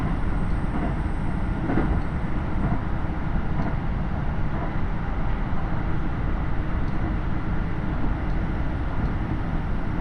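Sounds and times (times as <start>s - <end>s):
KiHa 75 diesel train rumble on the Takayama Line: 0.0s - 10.0s.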